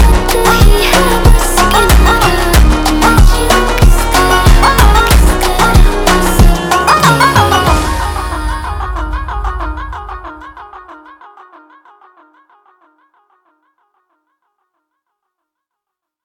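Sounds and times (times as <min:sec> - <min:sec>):
slowed funk music with reverb: 0:00.0 - 0:10.9.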